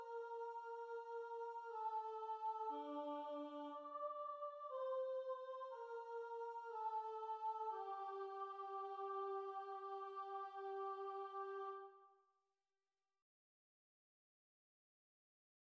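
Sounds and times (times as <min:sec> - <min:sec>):
soprano singing: 0:00.0 - 0:11.9.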